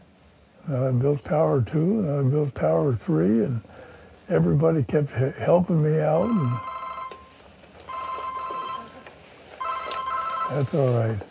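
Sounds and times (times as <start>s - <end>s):
speech: 0.7s - 6.7s, 10.5s - 11.2s
mobile phone ringing: 6.1s - 11.2s.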